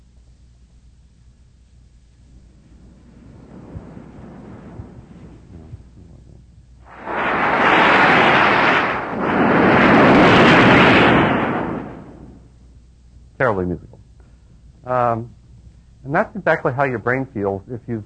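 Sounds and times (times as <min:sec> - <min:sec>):
low rumble: 0:01.1 - 0:13.1
pink noise bursts: 0:02.2 - 0:12.5
speech: 0:13.5 - 0:13.8, 0:14.9 - 0:15.4, 0:16.0 - 0:18.0.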